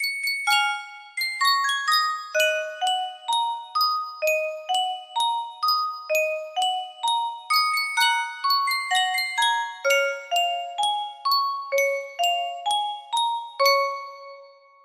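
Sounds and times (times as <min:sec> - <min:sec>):
yunsheng music box: 0:00.0 - 0:14.8.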